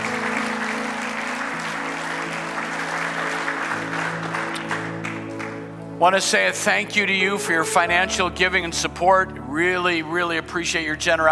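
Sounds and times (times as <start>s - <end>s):
audience applause: 0.0s - 5.7s
speech: 6.0s - 11.2s.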